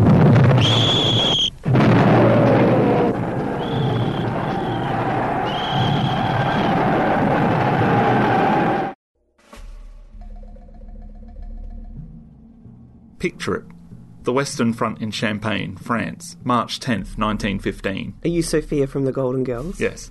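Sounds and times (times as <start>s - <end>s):
artillery barrage from French 75 field guns, Champagne, France, 1915: 0.0s - 9.0s
high whistling tones: 0.6s - 1.6s, 3.4s - 6.9s
speech: 13.3s - 20.1s.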